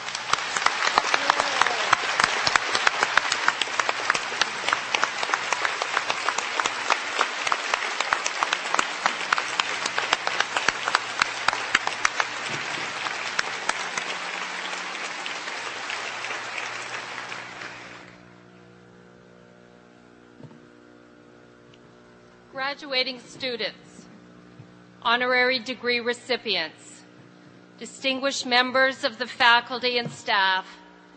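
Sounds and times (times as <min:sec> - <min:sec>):
audience applause at graduation ceremony: 0:00.0 - 0:18.2
speech: 0:23.0 - 0:23.9, 0:25.0 - 0:26.9, 0:27.8 - 0:30.8.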